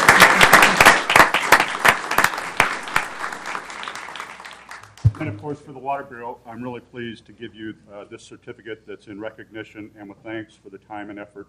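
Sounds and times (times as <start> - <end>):
audience applause: 0.0 - 5.3
speech: 5.2 - 11.4.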